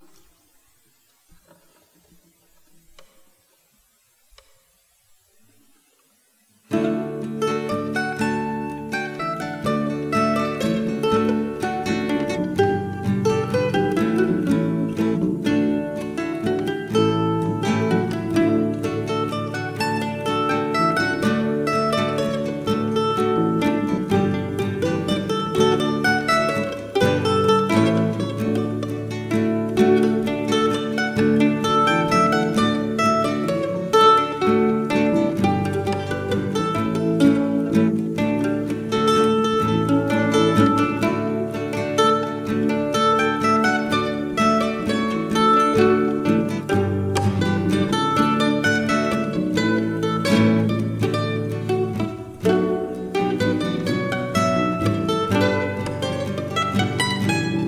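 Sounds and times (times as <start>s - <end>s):
waltz music: 6.8s - 57.6s.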